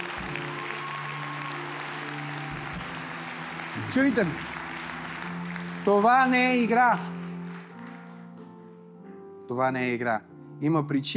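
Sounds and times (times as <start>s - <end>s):
audience applauding: 0.0s - 8.4s
speech: 3.9s - 4.5s, 5.8s - 7.2s, 9.5s - 11.1s.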